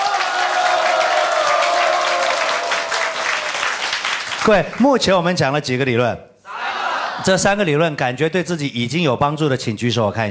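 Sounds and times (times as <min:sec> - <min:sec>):
audience applause: 0:00.0 - 0:04.9
speech: 0:04.4 - 0:06.3, 0:07.2 - 0:10.3.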